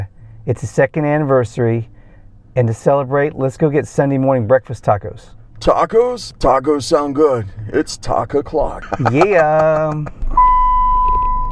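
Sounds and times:
speech: 0.0 - 2.0, 2.6 - 10.3
low, constant engine rumble: 0.0 - 11.5
laughter: 8.6 - 10.3
Volkswagen seatbelt warning chime: 10.4 - 11.5.

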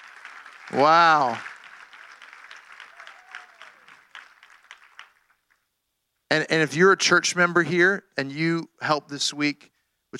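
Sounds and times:
church audience applauding: 0.0 - 5.7
speech: 0.7 - 1.5, 6.3 - 10.1.

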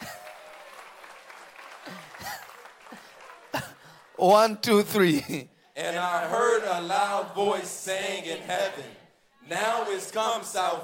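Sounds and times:
audience clapping: 0.0 - 5.4
speech: 4.2 - 10.8.

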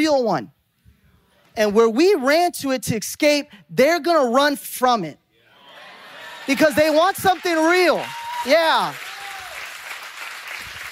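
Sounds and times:
speech: 0.0 - 0.6, 1.6 - 5.2, 6.5 - 9.0
audience clapping: 6.2 - 10.9.

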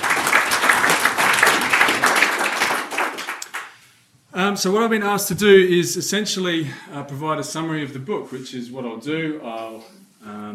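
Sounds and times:
audience applause: 0.0 - 3.7
speech: 4.5 - 10.5.

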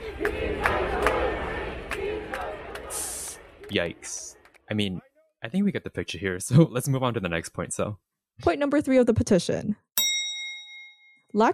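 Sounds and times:
rally crowd booing: 0.0 - 4.8
people shouting: 0.0 - 4.9
people clapping: 0.0 - 5.0
speech: 3.7 - 9.8, 11.3 - 11.5.

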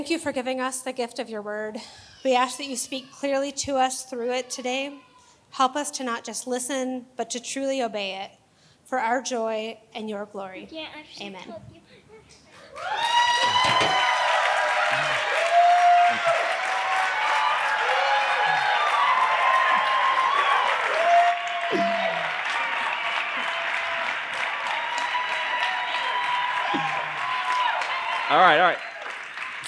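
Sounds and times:
speech: 0.0 - 11.8, 28.3 - 28.8
audience applause: 12.6 - 29.6.

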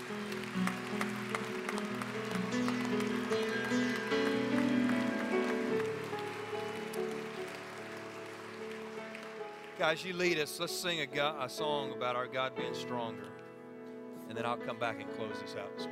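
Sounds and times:
crowd clapping: 0.0 - 11.0
speech: 9.8 - 13.4, 14.3 - 15.8.

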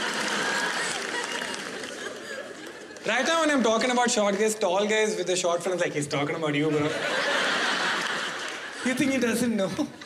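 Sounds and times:
laughter: 0.0 - 4.0, 6.6 - 10.0
audience clapping: 0.0 - 4.8, 7.6 - 8.9
crowd noise: 0.0 - 10.0
speech: 3.0 - 7.4, 8.8 - 10.0.

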